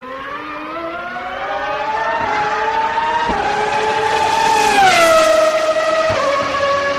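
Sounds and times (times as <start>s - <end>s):
Indycar: 0.0s - 6.9s.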